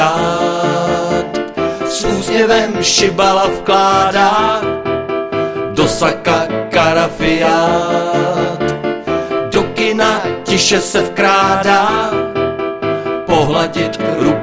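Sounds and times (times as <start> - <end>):
piano: 0.0 - 14.4.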